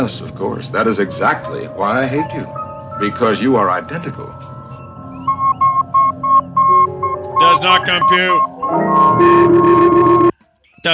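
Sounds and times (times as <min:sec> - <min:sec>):
speech: 0:00.0 - 0:04.5, 0:07.6 - 0:09.9
electronic robot beeping: 0:04.6 - 0:10.4.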